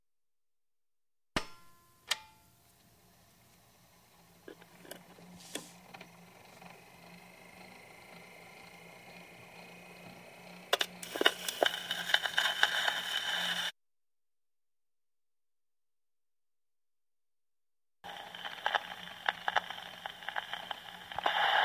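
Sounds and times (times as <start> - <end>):
switch clanks: 1.4 - 2.5
needle on record: 2.1 - 13.7, 18.0 - 21.6.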